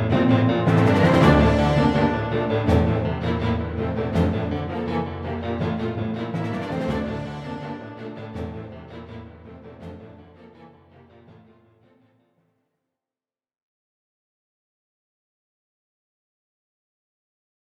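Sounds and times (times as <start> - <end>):
orchestral action strings film cue: 0.0 - 11.6.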